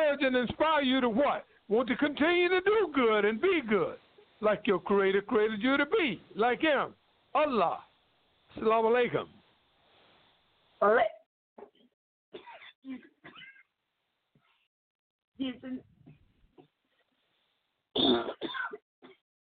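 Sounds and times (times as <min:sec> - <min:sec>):
speech: 0:00.1 - 0:07.9, 0:08.5 - 0:09.4, 0:10.8 - 0:11.7, 0:12.3 - 0:13.4, 0:15.4 - 0:15.9, 0:18.0 - 0:18.8
person coughing after a drink went down the wrong way: 0:12.4 - 0:13.6, 0:18.0 - 0:19.2
throat clearing: 0:18.0 - 0:19.2.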